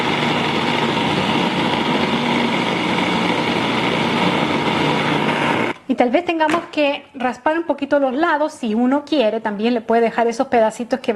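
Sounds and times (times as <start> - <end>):
food processor grinding strawberries: 0.0 - 5.8
speech: 6.0 - 11.1.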